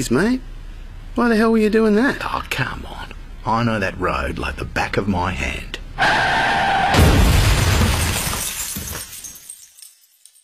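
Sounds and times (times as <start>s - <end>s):
speech: 0.0s - 0.6s, 1.2s - 6.4s
glass shattering: 7.0s - 10.4s.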